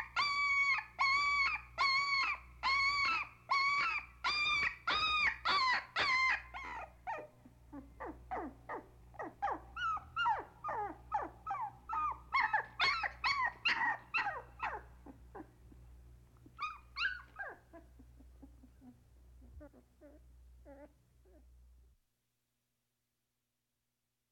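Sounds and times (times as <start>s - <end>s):
puppy giving drawn-out whines: 0.0s - 21.6s.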